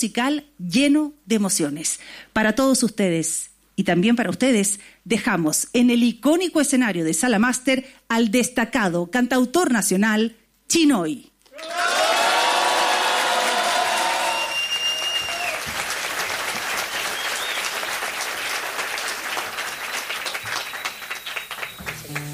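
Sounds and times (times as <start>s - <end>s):
speech: 0.0s - 12.0s
loud audience applause: 11.5s - 22.3s
whoops and high whistles: 13.9s - 15.6s, 17.0s - 17.7s.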